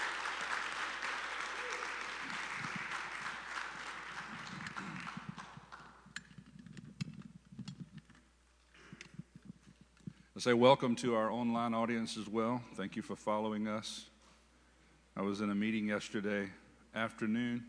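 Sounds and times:
church congregation applauding: 0.0s - 6.1s
speech: 10.4s - 14.1s, 15.2s - 17.6s.

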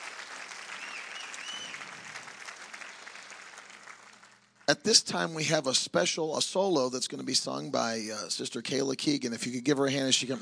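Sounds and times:
round of applause: 0.0s - 4.9s
speech: 4.7s - 10.3s.

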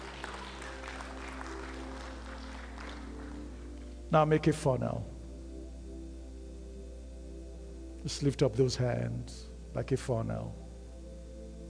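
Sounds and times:
audience clapping: 0.0s - 4.0s
speech: 4.1s - 5.1s, 8.0s - 10.6s.

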